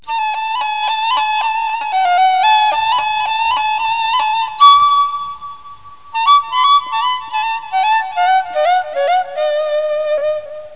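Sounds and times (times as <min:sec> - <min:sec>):
flute: 0:00.0 - 0:10.7.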